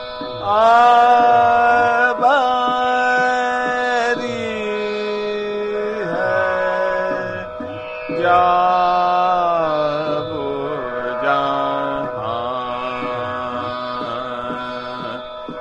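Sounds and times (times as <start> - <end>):
Hindustani bada khyal vocal performance in slow ektaal: 0.0 - 15.5.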